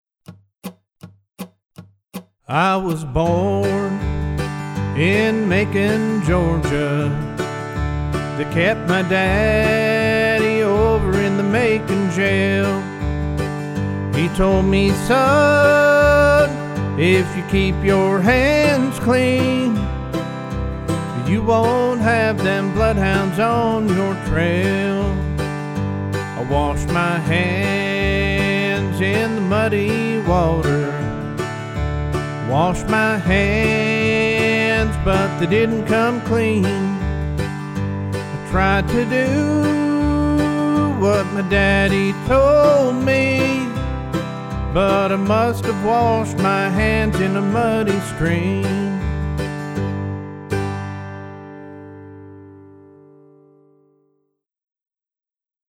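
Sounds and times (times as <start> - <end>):
backing track in the key of G: 0.2 - 53.5
vocals in the key of G: 2.5 - 37.6, 38.2 - 49.6.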